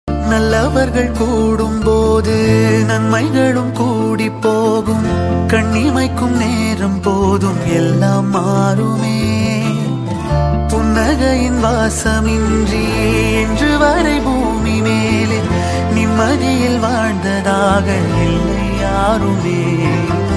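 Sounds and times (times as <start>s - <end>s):
Tamil song: 0.1s - 20.3s.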